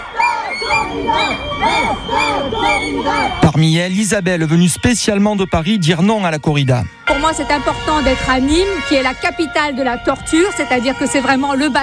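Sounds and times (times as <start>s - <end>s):
protesters' shrill whistles: 0.0s - 3.3s
crowd of protesters shouting and chanting: 0.0s - 11.8s
speech: 0.9s - 11.8s.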